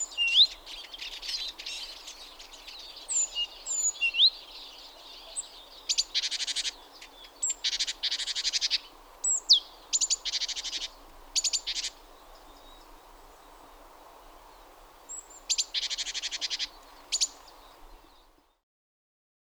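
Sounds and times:
great tit churring calls and whistles: 0.1 - 12.0, 15.1 - 17.6.

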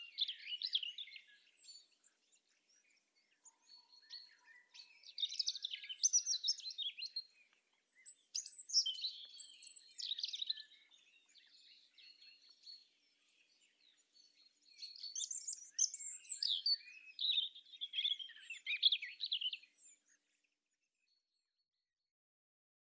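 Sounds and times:
European robin song: 0.0 - 2.0, 4.7 - 20.1.

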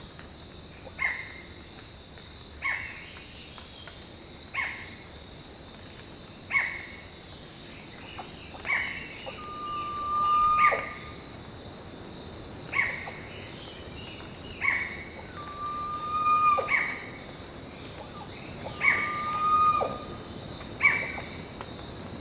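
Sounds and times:
constant high insect-like hum: 5.0 - 22.2
bird calls: 8.2 - 11.2, 14.6 - 21.6.

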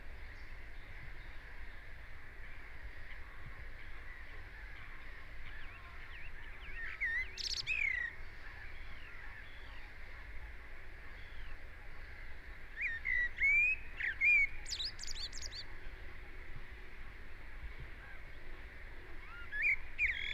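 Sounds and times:
steady background noise: 0.0 - 20.3
common blackbird singing: 5.5 - 9.9, 12.8 - 15.7, 19.2 - 20.3.

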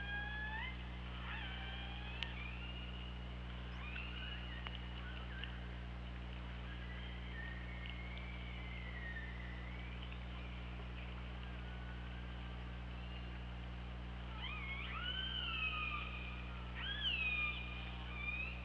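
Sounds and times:
killer whale whistled calls: 0.0 - 5.7, 6.6 - 10.0, 14.3 - 18.6
steady low underwater hum: 0.0 - 18.6.

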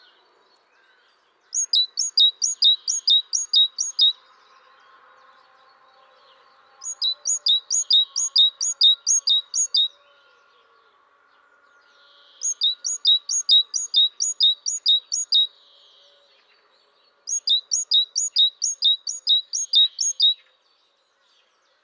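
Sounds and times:
great tit singing two-note phrases: 1.5 - 4.2, 6.8 - 9.9, 12.4 - 15.6, 17.3 - 20.5.

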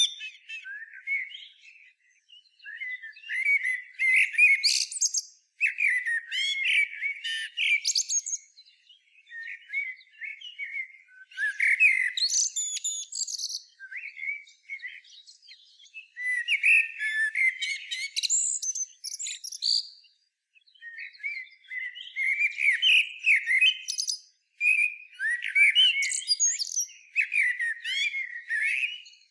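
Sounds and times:
common blackbird song: 0.0 - 29.2.

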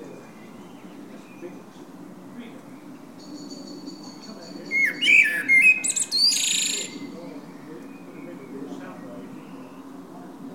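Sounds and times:
Common blackbird song, fluted whistle and squeaks: 4.6 - 7.1.

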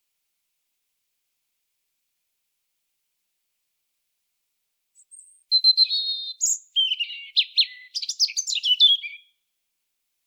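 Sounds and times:
European robin singing: 5.0 - 9.4.

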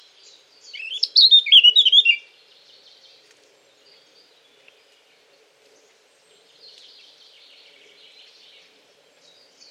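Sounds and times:
Eurasian blackcap singing: 0.6 - 2.2.

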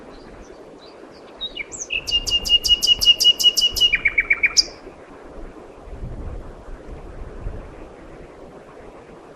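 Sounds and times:
common nightingale song: 0.1 - 4.8.

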